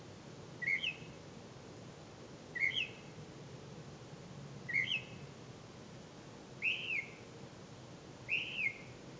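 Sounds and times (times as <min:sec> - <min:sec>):
bird chirps: 0:00.6 - 0:01.1, 0:02.6 - 0:03.1, 0:04.7 - 0:05.2, 0:06.6 - 0:07.2, 0:08.3 - 0:08.9.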